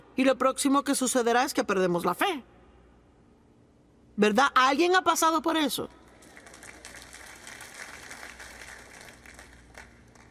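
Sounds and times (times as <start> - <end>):
speech: 0.2 - 2.6, 4.2 - 6.0
quiet applause: 6.1 - 10.2.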